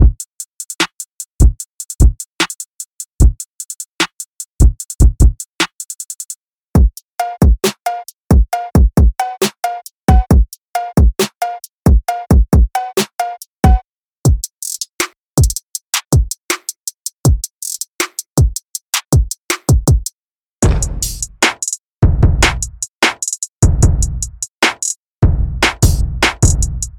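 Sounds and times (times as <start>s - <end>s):
drum: 0.0s - 0.2s, 1.4s - 2.2s, 3.2s - 3.4s, 4.0s - 5.8s, 6.8s - 26.9s.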